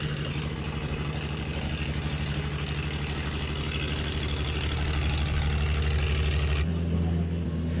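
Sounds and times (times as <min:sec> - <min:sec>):
floating crane machinery working: 0:00.0 - 0:07.7.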